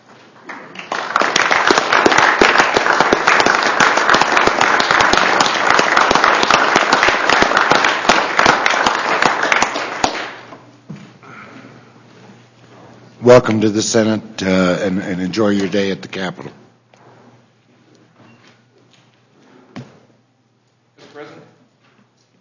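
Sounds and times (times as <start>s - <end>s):
applause welcoming FFA chapter visitors in a state Senate chamber: 0.0s - 10.5s
speech: 13.3s - 16.6s.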